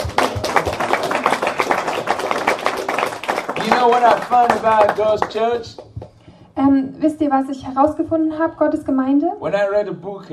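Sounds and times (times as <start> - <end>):
people clapping: 0.0 - 6.4
speech: 3.8 - 5.8, 6.6 - 10.3.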